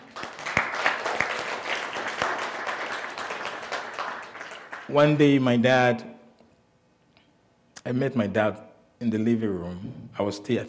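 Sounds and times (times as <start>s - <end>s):
audience clapping: 0.0s - 5.3s
speech: 4.9s - 6.1s, 7.9s - 10.6s.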